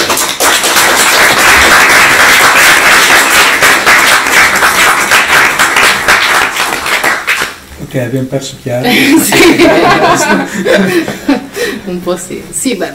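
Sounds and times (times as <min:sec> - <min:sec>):
applause, hands clapping: 0:00.0 - 0:07.7
speech: 0:08.0 - 0:12.9
laughter: 0:08.8 - 0:11.6.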